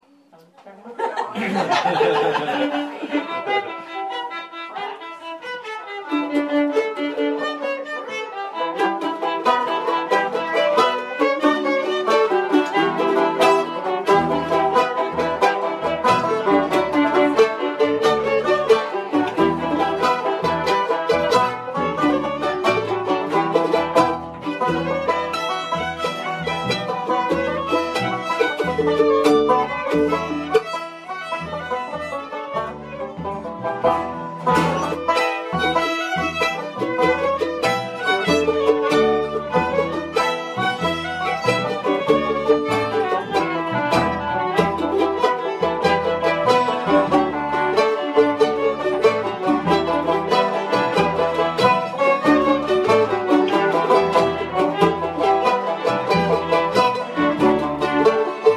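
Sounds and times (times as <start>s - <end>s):
laughter: 0.8s - 4.4s
jig tune: 2.4s - 58.5s.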